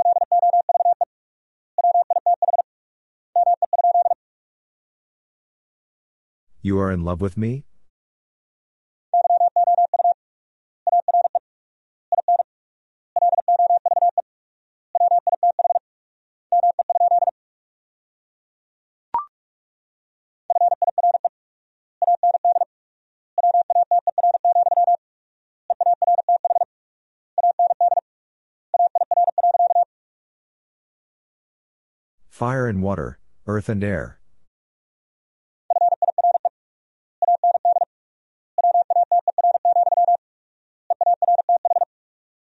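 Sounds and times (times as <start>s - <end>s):
Morse code tones sent at 45 wpm: 0.0s - 1.0s, 1.8s - 2.6s, 3.4s - 4.2s, 9.2s - 10.2s, 10.9s - 11.4s, 13.2s - 14.2s, 15.0s - 15.8s, 16.6s - 17.3s, 20.5s - 21.3s, 22.0s - 22.7s, 23.4s - 25.0s, 25.8s - 26.7s, 27.4s - 28.0s, 28.8s - 29.9s, 35.7s - 36.5s, 37.2s - 37.9s, 38.6s - 40.2s, 40.9s - 41.9s
speech: 6.6s - 7.7s, 32.4s - 34.2s.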